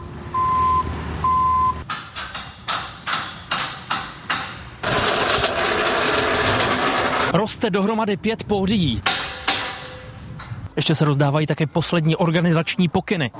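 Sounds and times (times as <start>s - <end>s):
rumbling engine: 0.0s - 7.4s
construction site reversing beeps: 0.4s - 1.8s
loud steady grinding roar: 4.8s - 7.3s
speech: 7.3s - 9.1s, 10.8s - 13.3s.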